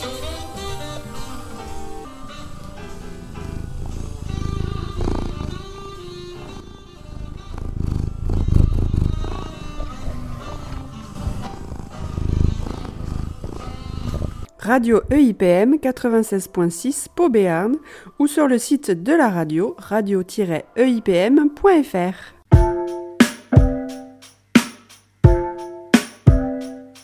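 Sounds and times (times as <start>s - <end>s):
cat purring: 0.0s - 14.6s
sustained tonal jazz-like music: 0.0s - 17.8s, 19.6s - 27.0s
speech: 14.7s - 22.4s.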